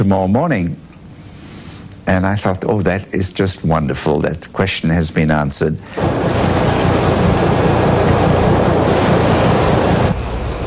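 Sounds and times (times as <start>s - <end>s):
speech: 0.0s - 0.9s, 2.1s - 6.6s
fierce storm on Heard Island: 6.0s - 10.6s.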